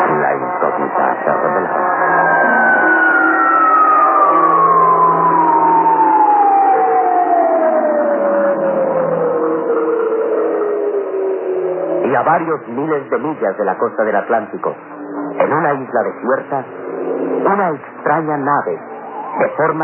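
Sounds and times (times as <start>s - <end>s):
alarm sirens wailing: 0.0s - 19.8s
speech: 12.2s - 14.9s, 15.5s - 16.8s, 17.4s - 19.8s.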